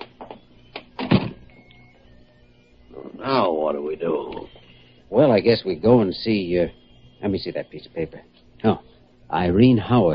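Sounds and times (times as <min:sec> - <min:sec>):
door opening and closing: 0:00.2 - 0:01.7
speech: 0:03.5 - 0:10.1.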